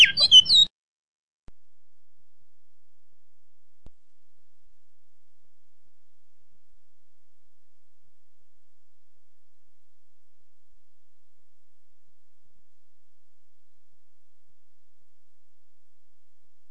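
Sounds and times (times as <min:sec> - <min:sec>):
great-billed seed finch whistling song with buzzy rattle: 0:00.0 - 0:00.7.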